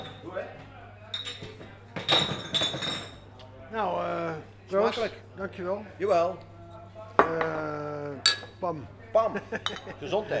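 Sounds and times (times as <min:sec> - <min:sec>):
glasses clinking together: 0:00.0 - 0:00.3, 0:01.1 - 0:03.4, 0:07.2 - 0:07.6, 0:08.2 - 0:08.6, 0:09.6 - 0:10.1
faint murmur: 0:00.0 - 0:10.3
speech: 0:04.9 - 0:06.5, 0:08.6 - 0:10.3.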